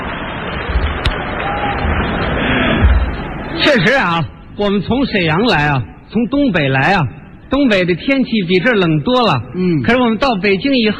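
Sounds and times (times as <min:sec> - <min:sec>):
audience applause: 0:00.0 - 0:03.0
speech: 0:03.7 - 0:10.9.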